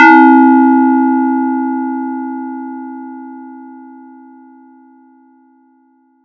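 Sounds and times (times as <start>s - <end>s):
random bell sound effect: 0.0s - 3.1s.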